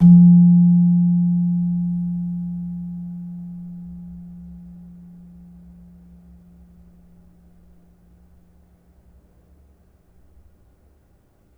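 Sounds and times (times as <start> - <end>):
slentem gamelan metallophone struck hard: 0.0 - 3.8.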